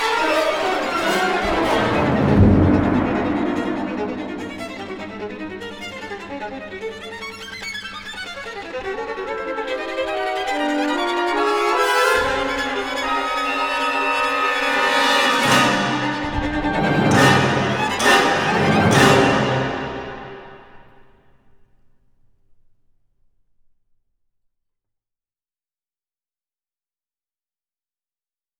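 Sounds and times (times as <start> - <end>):
agitated perpetuum mobile violin concerto: 0.0 - 20.8.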